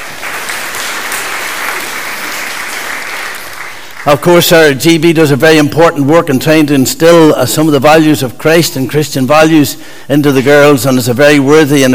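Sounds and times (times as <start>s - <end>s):
audience applause: 0.0s - 4.3s
speech: 4.0s - 11.9s.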